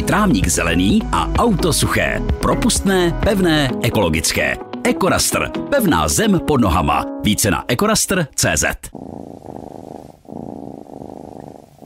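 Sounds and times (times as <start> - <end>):
speech: 0.1 - 9.0
cat purring: 8.8 - 11.8.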